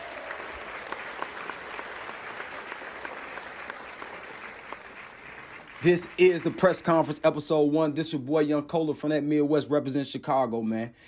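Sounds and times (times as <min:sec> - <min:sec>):
round of applause: 0:00.0 - 0:07.4
speech: 0:05.8 - 0:11.0.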